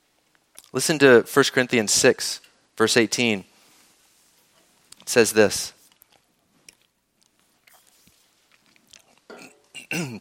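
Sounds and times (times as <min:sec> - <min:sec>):
swallowing and mouth clicks: 0:00.4 - 0:00.7, 0:05.9 - 0:09.9
speech: 0:00.7 - 0:03.5, 0:05.1 - 0:05.8
person choking on water: 0:09.1 - 0:10.1
sputtering coughs from choking on water: 0:09.3 - 0:10.1.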